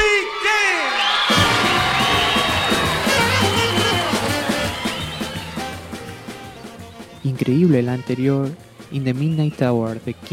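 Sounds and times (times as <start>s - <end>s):
shouts: 0.0s - 5.8s
live concert audience cheering: 0.0s - 10.3s
live concert audience applause: 0.9s - 7.0s
whistles: 1.0s - 7.6s, 8.9s - 9.9s
speech: 7.4s - 10.3s.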